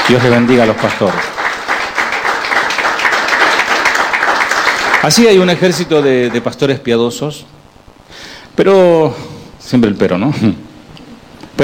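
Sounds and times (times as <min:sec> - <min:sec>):
audience applause: 0:00.0 - 0:06.6
speech: 0:00.1 - 0:01.3, 0:05.0 - 0:07.6, 0:08.6 - 0:10.6.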